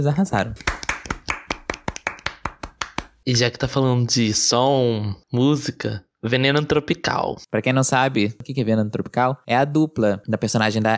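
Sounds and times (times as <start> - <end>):
speech: 0.0 - 0.8, 3.2 - 10.9
hand clapping: 0.4 - 3.2.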